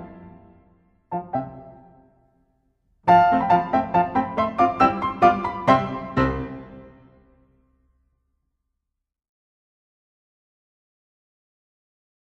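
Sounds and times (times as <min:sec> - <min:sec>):
ballet class music for battements tendus and glissés: 0:00.0 - 0:02.2, 0:03.1 - 0:07.4.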